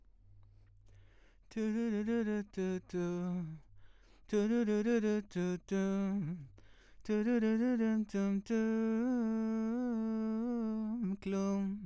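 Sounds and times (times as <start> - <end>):
vocals: 0.8 - 11.8.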